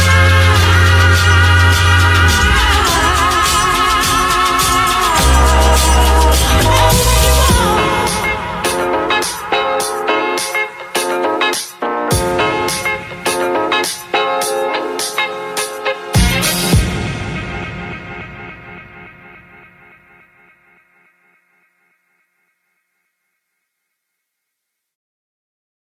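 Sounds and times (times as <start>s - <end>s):
jingle music: 0.0s - 19.1s.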